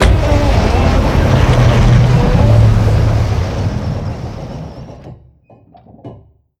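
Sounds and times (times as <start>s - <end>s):
door opening: 0.0s - 6.3s.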